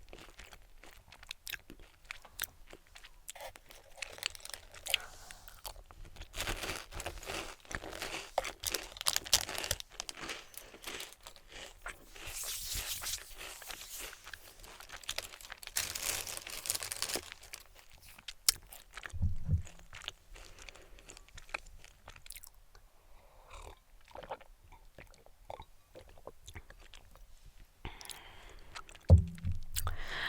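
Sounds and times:
person crunching and chewing German snacks: 0:00.0 - 0:22.8, 0:23.4 - 0:29.1
low thumps: 0:19.2 - 0:19.9, 0:29.1 - 0:30.1.

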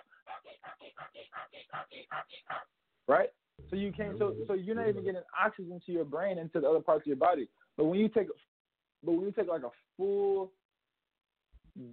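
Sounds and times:
person demonstrating rapid shallow stressed panting: 0:00.0 - 0:02.7
speech: 0:01.8 - 0:10.6, 0:11.8 - 0:11.9.

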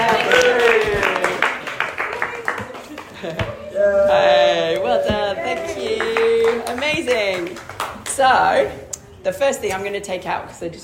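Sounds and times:
audience clapping: 0:00.0 - 0:03.6, 0:04.6 - 0:08.6
speech: 0:08.2 - 0:10.8.

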